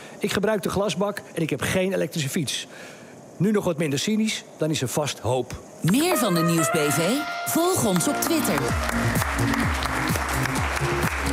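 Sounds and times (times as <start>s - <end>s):
speech: 0.2s - 9.9s
audience applause at the Green Village: 7.7s - 11.3s.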